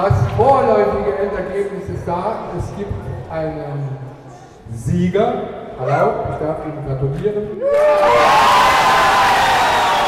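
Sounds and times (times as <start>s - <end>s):
speech: 0.0s - 4.1s, 4.7s - 9.3s
SPD supporters cheering in the Littermundhalle in Nalbach: 7.6s - 10.0s.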